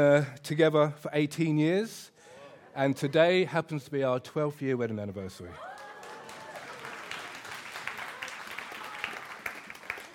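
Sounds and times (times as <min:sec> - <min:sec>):
speech: 0:00.0 - 0:02.2, 0:02.8 - 0:05.7
audience applause: 0:05.6 - 0:10.1.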